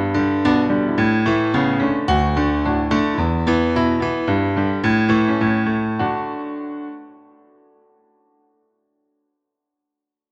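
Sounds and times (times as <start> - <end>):
polka piano: 0.0 - 7.4.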